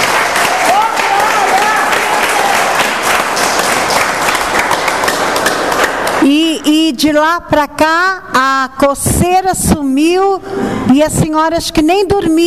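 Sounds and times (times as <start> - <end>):
audience applause: 0.0 - 6.3
speech: 6.6 - 12.4.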